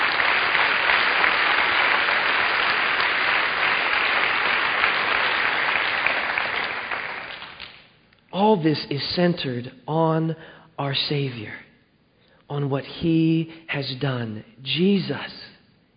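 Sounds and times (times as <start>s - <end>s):
audience clapping: 0.0s - 7.9s
speech: 8.6s - 11.6s, 12.5s - 15.4s.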